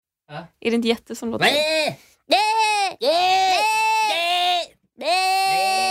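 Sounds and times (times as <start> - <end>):
speech: 0.3 - 2.4, 3.0 - 3.6
human voice imitating screaming goats: 1.4 - 5.8.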